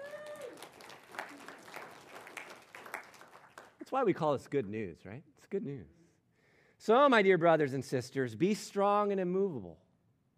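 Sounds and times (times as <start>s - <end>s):
audience clapping: 0.0s - 4.3s
speech: 3.9s - 6.0s, 6.8s - 9.8s.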